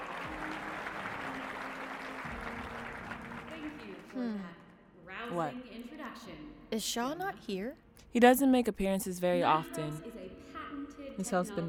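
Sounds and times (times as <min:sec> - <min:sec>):
audience applause: 0:00.0 - 0:04.2
speech: 0:05.3 - 0:10.2, 0:11.2 - 0:11.6.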